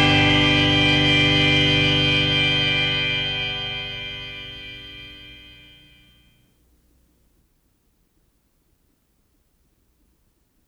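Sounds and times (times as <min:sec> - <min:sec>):
Christmas organ: 0:00.0 - 0:06.4.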